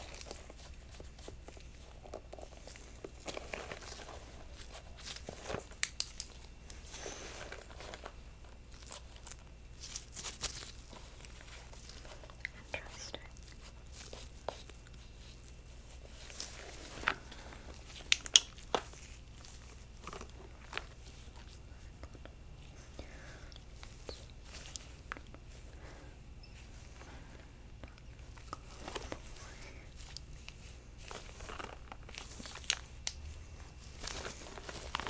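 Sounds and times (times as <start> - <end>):
faint low hum: 0.0 - 35.0
gloved hands handling objects, rustling and crinkling: 0.0 - 35.0.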